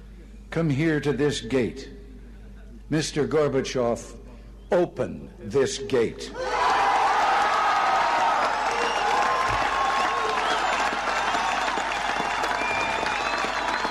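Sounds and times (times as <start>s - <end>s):
speech: 0.5s - 2.0s, 2.9s - 6.5s
German crowd in West Berlin cheering and applauding: 6.4s - 13.9s
shouts and whistles: 6.4s - 13.9s.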